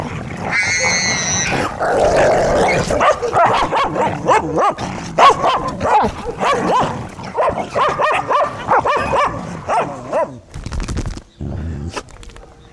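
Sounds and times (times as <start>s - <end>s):
domestic dogs giving yelping barks: 0.0s - 10.4s
speech: 1.8s - 5.1s.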